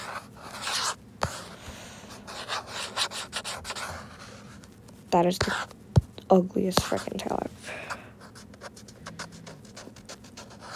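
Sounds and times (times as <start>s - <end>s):
drawing strokes rubbing and scratching across a surface: 0.0s - 1.6s, 2.2s - 4.6s, 8.3s - 10.7s
speech: 5.1s - 5.7s, 6.3s - 7.5s.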